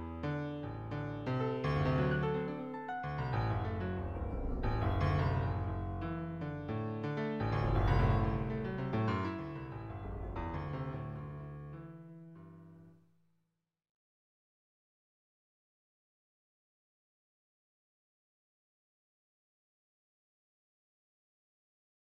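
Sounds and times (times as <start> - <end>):
microtonal romantic piano piece: 0.0 - 12.9.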